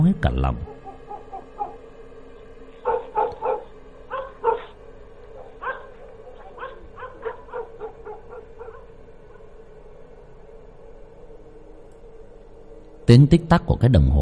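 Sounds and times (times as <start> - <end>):
speech: 0.0 - 0.7, 13.1 - 14.1
dogs barking in the distance at the edge of the village: 0.4 - 10.6.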